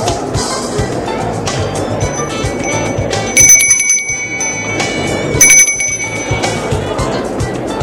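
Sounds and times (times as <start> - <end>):
busy noise: 0.0 - 7.8
doorbell ringing at apartment door: 2.0 - 6.8.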